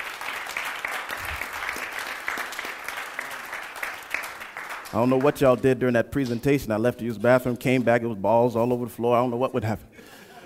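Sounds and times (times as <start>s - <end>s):
audience applause: 0.0s - 5.4s
speech: 4.9s - 9.9s.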